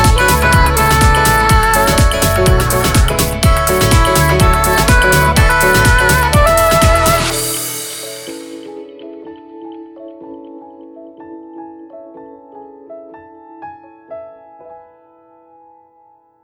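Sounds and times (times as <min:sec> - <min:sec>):
person humming: 0:00.0 - 0:07.9.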